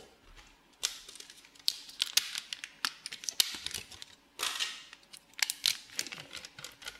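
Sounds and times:
crinkling and scraping of Emborg cream cheese going into a stand mixer bowl: 0.3s - 6.9s.

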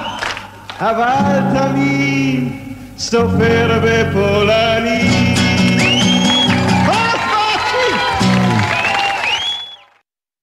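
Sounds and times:
audience applause: 0.0s - 0.8s, 5.7s - 10.0s
speech: 0.8s - 5.3s.

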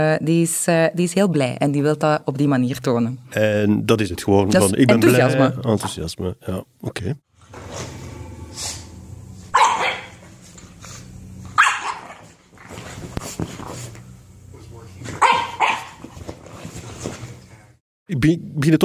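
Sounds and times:
speech: 0.0s - 7.9s, 18.1s - 18.8s
dog play barking: 9.5s - 10.3s, 11.5s - 12.3s, 15.1s - 16.0s.

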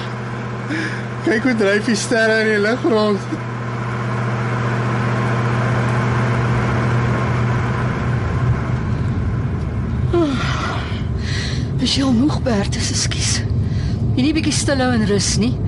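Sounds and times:
car engine droning on a night road trip toward Keetmanshoop: 0.0s - 15.6s
speech: 0.7s - 3.5s, 11.9s - 13.5s, 14.2s - 15.6s.

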